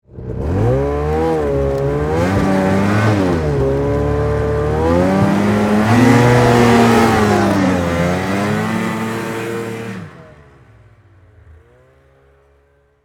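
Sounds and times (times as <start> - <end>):
Yamaha Exciter 440 snowmobile stuck in snow pulling away: 0.1 - 13.0.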